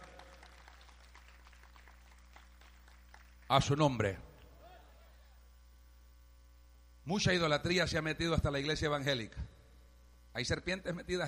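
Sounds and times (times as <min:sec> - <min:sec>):
audience applause: 0:00.0 - 0:03.5
speech: 0:03.5 - 0:04.3, 0:07.1 - 0:09.6, 0:10.4 - 0:11.2.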